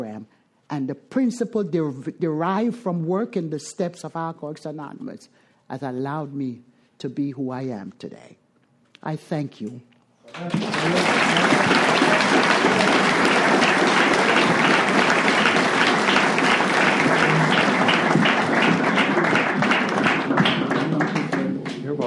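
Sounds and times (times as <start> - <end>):
speech: 0.0 - 8.4, 9.0 - 13.6
audience applause for a speaker at an Alcoholics Anonymous meeting: 10.3 - 22.0.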